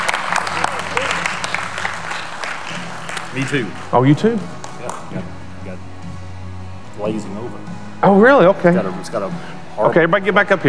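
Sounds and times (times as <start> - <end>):
audience clapping hands: 0.0 - 5.3
speech: 3.4 - 5.3, 7.0 - 10.6.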